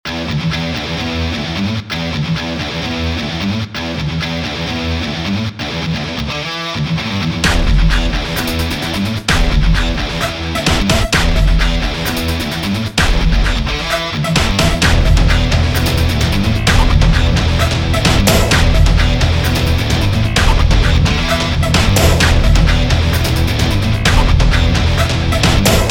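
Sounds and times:
heavy guitar riffs: 0.1 - 25.8.

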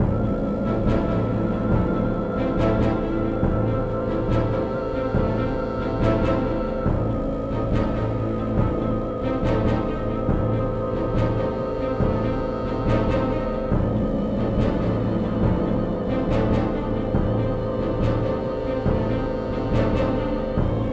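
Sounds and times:
suspicious stealth music layer: 0.0 - 20.9.

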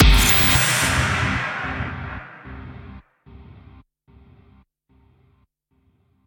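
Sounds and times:
musical end sting: 0.0 - 3.0.

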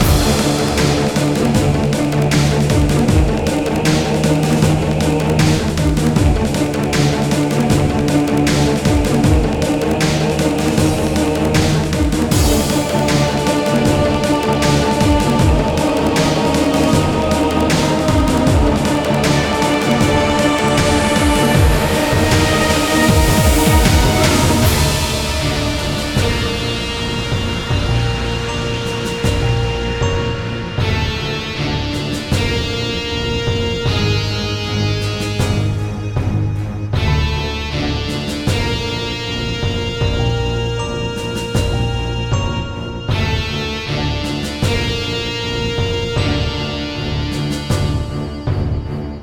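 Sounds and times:
music: 0.0 - 49.2.

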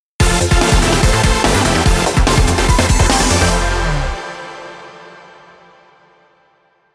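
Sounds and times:
victory jingle: 0.7 - 5.0.

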